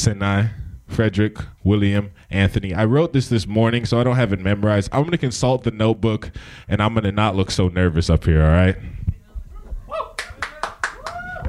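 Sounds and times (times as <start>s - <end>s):
speech: 0.0s - 9.1s
audience applause: 10.2s - 11.4s.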